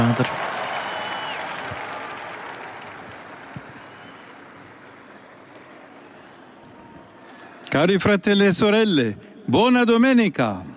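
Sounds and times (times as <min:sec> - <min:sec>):
large crowd applauding in the open air: 0:00.0 - 0:05.8
speech: 0:00.1 - 0:00.4, 0:07.8 - 0:10.7.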